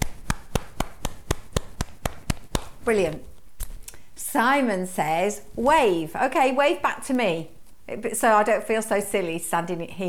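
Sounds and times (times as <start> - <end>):
hands clapping: 0.0 - 2.8
speech: 2.8 - 3.3, 4.3 - 10.0.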